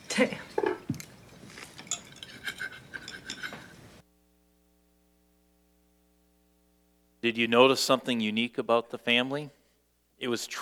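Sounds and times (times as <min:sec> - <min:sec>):
speech: 0:00.2 - 0:00.4, 0:07.3 - 0:09.6, 0:10.2 - 0:10.5
spoon clinking against dishes serving green beans: 0:00.5 - 0:04.0.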